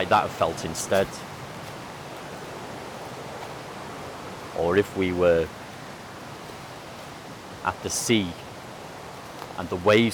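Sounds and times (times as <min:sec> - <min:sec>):
speech: 0:00.0 - 0:01.3, 0:04.6 - 0:05.6, 0:07.6 - 0:08.4, 0:09.6 - 0:10.1
rushing river water: 0:00.0 - 0:10.1.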